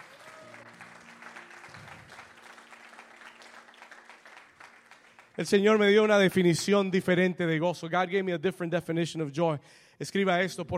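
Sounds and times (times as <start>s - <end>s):
audience applause: 0.0s - 6.2s
speech: 5.4s - 10.7s.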